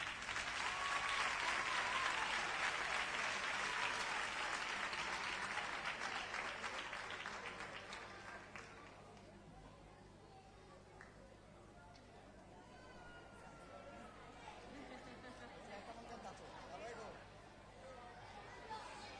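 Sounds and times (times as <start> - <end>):
applause: 0.0 - 9.3.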